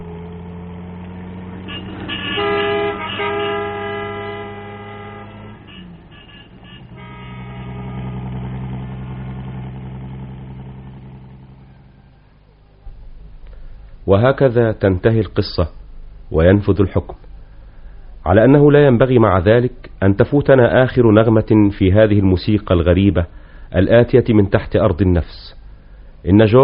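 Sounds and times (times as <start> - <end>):
traffic rumble: 0.0 - 26.6
car horns: 1.3 - 9.3
speech: 14.1 - 17.2, 18.3 - 25.6, 26.2 - 26.6.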